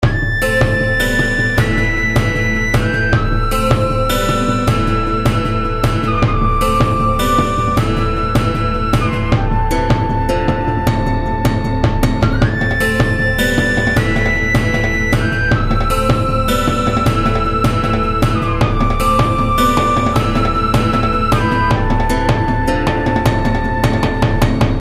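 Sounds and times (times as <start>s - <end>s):
taiko drums: 0.0s - 24.7s.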